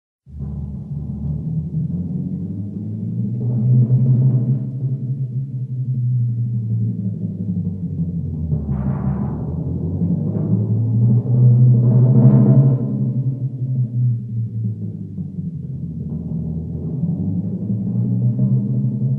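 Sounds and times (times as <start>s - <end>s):
timpani: 0.3s - 19.1s.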